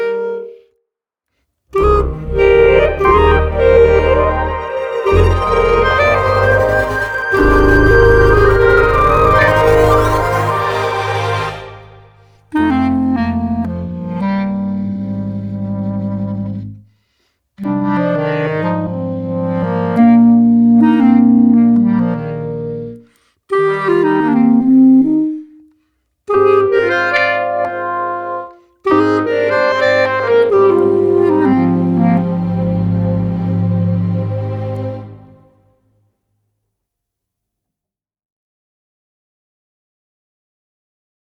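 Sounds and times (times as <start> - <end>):
clarinet: 0.0 - 0.7, 1.8 - 17.0, 17.6 - 35.6
vocoder: 2.2 - 12.0.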